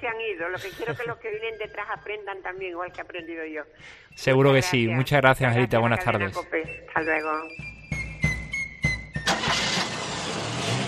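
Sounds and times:
speech: 0.3s - 7.7s
car engine starting: 9.1s - 10.8s.

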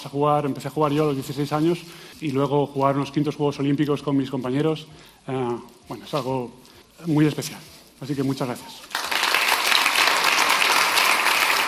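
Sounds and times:
speech: 0.0s - 9.0s
audience applause in the Gran Teatro del Liceo de Barcelona: 8.9s - 11.6s.

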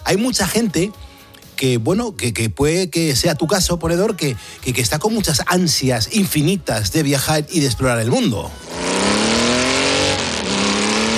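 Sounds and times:
speech: 0.1s - 8.8s
motorcycle engine revving and passing: 8.5s - 11.1s.

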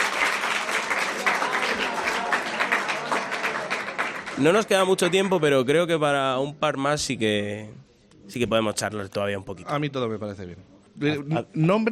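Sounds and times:
audience applause: 0.0s - 5.4s
speech: 4.4s - 11.9s.

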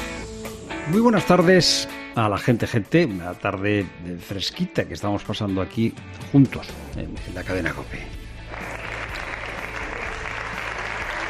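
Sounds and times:
speech: 0.9s - 8.2s
applause: 8.4s - 11.2s.

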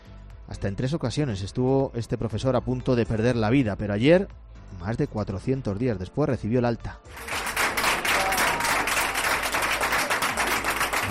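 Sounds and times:
speech: 0.5s - 7.3s
hospital staff applauding a discharged patient: 7.1s - 11.1s.

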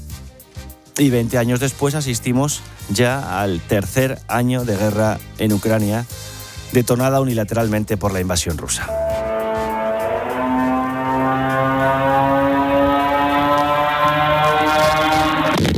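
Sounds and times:
speech: 1.0s - 9.1s
Iranian-made Shahed attack drones: 8.9s - 15.6s.

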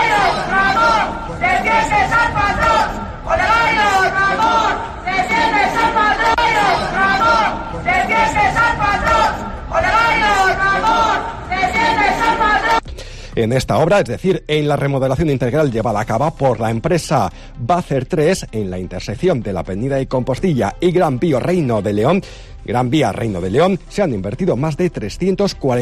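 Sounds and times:
employees shouting slogans at the councillor: 0.0s - 12.8s
speech: 13.4s - 25.8s.

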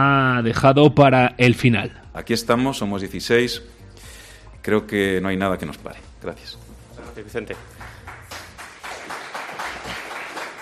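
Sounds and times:
speech: 0.0s - 3.8s, 4.6s - 8.0s
applause: 7.4s - 10.5s.

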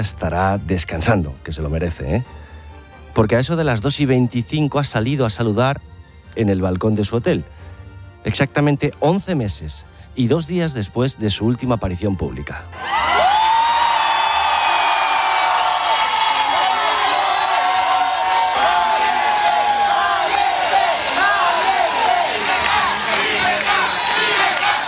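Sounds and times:
speech: 0.0s - 2.4s, 3.2s - 7.6s, 8.2s - 13.2s
crowd shouting and cheering in Oslo: 12.7s - 24.8s.

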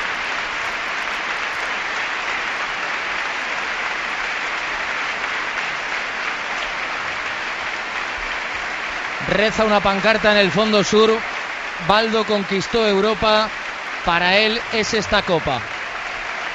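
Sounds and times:
Valencia Club de Fútbol fans applauding in stadium: 0.0s - 16.5s
speech: 9.3s - 15.7s.

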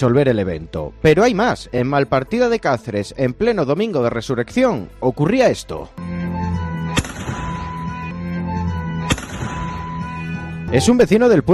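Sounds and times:
speech: 0.0s - 6.2s, 10.7s - 11.5s
shotgun blasts fired into the air in the Plaza Mayor of Malpartida de Cáceres: 7.0s - 7.7s, 9.1s - 9.8s.

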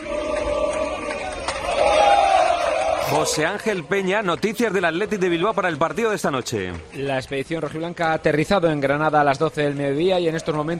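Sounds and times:
Athletic de Bilbao football fans cheering the team off to Granada: 0.0s - 3.3s
speech: 3.1s - 10.7s.

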